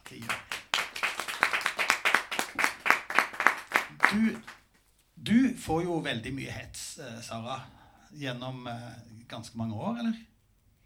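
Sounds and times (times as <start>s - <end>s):
small audience clapping: 0.0s - 4.7s
speech: 4.1s - 4.5s, 5.2s - 10.3s.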